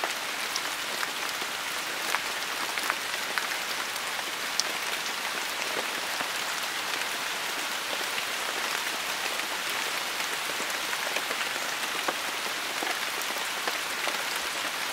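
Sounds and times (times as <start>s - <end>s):
rain in a forest: 0.0s - 14.9s.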